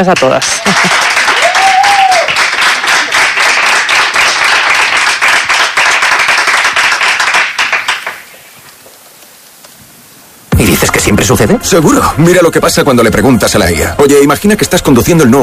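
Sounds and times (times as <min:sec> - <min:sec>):
speech: 0:00.0 - 0:01.1, 0:11.1 - 0:15.4
audience applause: 0:00.0 - 0:08.2.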